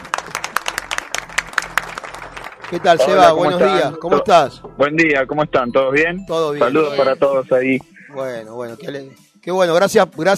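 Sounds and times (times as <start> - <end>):
crowd applause: 0.0 - 3.9
speech: 2.7 - 10.3.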